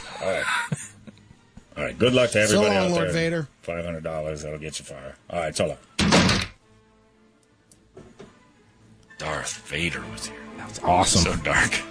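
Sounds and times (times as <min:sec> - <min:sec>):
speech: 0:00.2 - 0:00.8, 0:01.8 - 0:05.9, 0:09.2 - 0:11.8
door being opened and shut by hand: 0:06.0 - 0:06.6.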